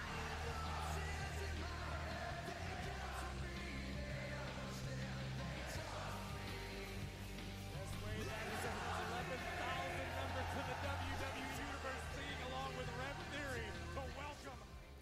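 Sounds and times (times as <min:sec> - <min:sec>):
French wrestling arena crowd singing songs: 0:00.0 - 0:14.2.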